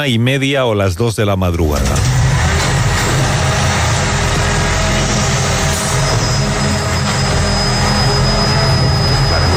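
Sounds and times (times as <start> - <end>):
speech: 0.0 - 2.2
cardboard recycling collection truck engine rumbling in the city: 1.8 - 9.5
thin high whine: 1.9 - 9.5.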